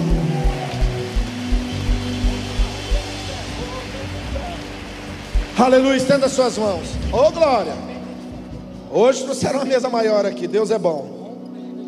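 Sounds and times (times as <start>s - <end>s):
audience applauding loudly: 0.0s - 7.7s
speech: 5.6s - 7.9s, 8.9s - 11.2s.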